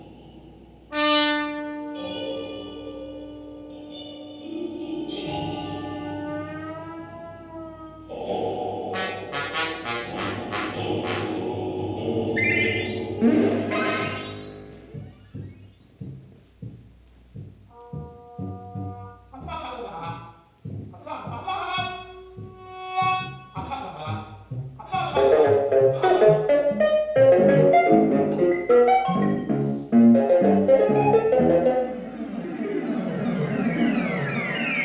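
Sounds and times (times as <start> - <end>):
trombone: 0.9 - 4.2, 5.2 - 15.4, 17.7 - 32.4
tape playback: 8.0 - 34.8.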